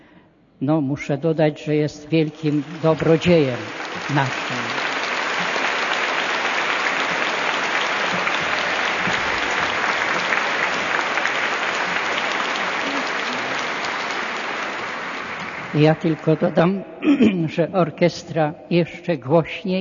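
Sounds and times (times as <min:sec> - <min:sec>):
speech: 0:00.6 - 0:04.9, 0:15.8 - 0:19.8
audience applause: 0:02.3 - 0:16.6.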